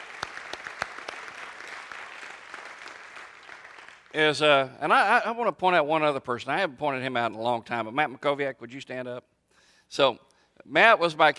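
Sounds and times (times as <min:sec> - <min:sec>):
round of applause: 0:00.0 - 0:04.2
speech: 0:04.1 - 0:09.3, 0:09.9 - 0:11.3.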